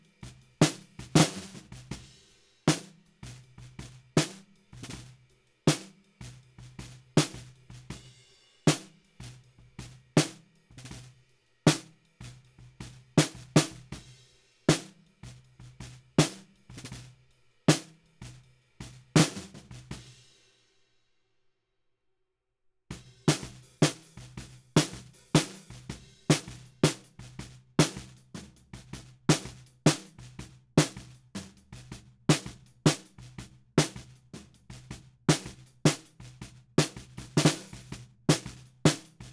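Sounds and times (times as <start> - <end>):
snare drum bottom at 160 BPM: 0.6 - 2.1, 2.7 - 5.1, 5.7 - 6.0, 6.8 - 8.0, 8.7 - 9.4, 10.2 - 11.1, 11.7 - 11.9, 12.8 - 14.1, 14.7 - 17.1, 17.7 - 20.0, 23.0 - 39.3.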